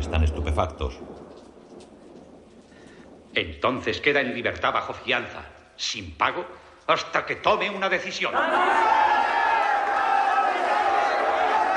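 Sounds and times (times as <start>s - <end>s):
speech: 0.1s - 1.3s, 3.4s - 9.1s
crowd cheering Gandhi as he leaves the courtroom: 8.3s - 11.7s.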